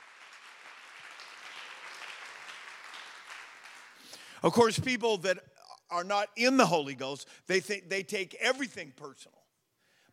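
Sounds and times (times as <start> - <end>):
crowd applauding: 0.0 - 4.3
speech: 4.4 - 9.4.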